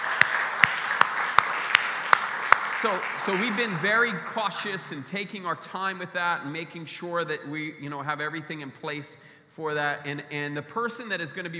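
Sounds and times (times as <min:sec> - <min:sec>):
audience applause: 0:00.0 - 0:04.8
sharp rhythmic clap: 0:00.0 - 0:05.0
speech: 0:02.8 - 0:11.5.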